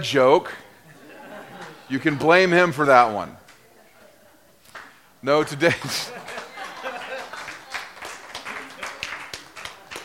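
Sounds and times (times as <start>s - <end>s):
speech: 0.0s - 0.6s, 1.9s - 3.4s, 5.2s - 6.2s
laughter: 0.6s - 10.0s
audience applause: 4.7s - 10.0s.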